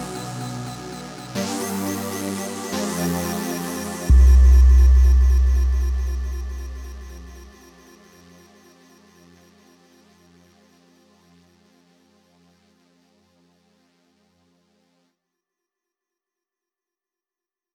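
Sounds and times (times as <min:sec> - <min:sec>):
dark forest ambience: 0:00.0 - 0:08.2.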